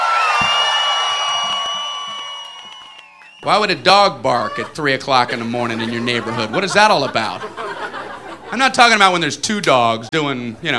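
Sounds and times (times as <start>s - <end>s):
loud audience cheering and shouting: 0.0s - 3.5s
speech: 3.4s - 7.6s, 8.5s - 10.7s
laughter: 4.2s - 8.8s.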